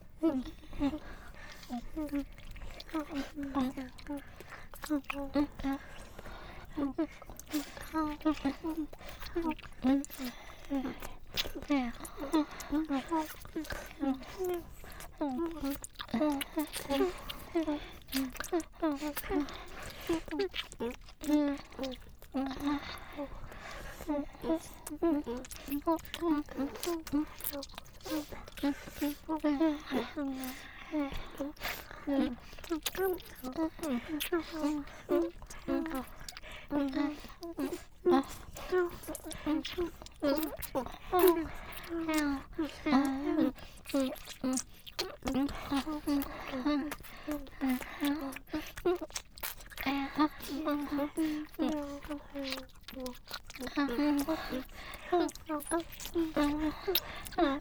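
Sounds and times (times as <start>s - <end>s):
ear licking sounds: 0.0s - 57.6s.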